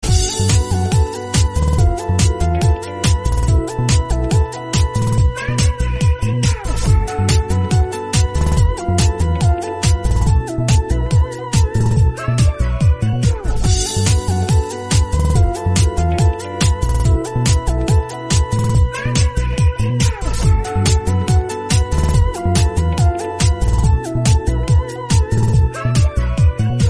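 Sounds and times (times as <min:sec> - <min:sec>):
background music: 0:00.0 - 0:26.8.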